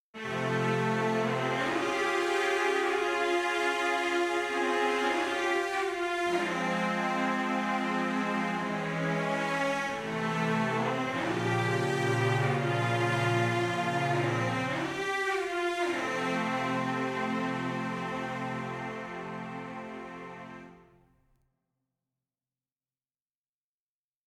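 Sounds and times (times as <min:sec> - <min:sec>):
romantic music interlude: 0:00.2 - 0:20.8.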